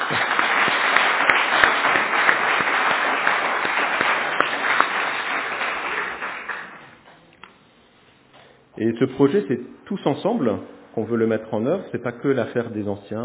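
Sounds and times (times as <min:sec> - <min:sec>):
audience applause in a church: 0:00.0 - 0:07.0
speech: 0:00.1 - 0:00.3, 0:08.8 - 0:13.2.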